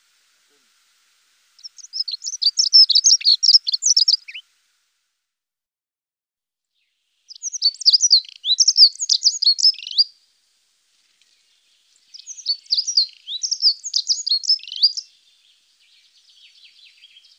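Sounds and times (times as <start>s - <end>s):
dunnock song: 1.6s - 4.5s, 6.7s - 10.2s, 11.0s - 17.3s.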